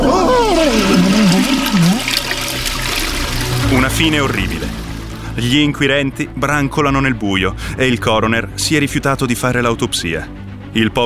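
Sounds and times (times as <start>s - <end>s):
person wailing: 0.0s - 2.1s
toilet flush sound effect: 0.0s - 5.5s
speech: 4.0s - 4.6s, 5.4s - 11.0s.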